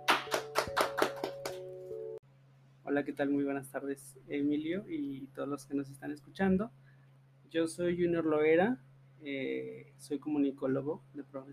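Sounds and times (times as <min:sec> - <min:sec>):
sharp evenly spaced hand claps: 0:00.0 - 0:01.8
speech: 0:02.9 - 0:06.9, 0:07.5 - 0:11.5.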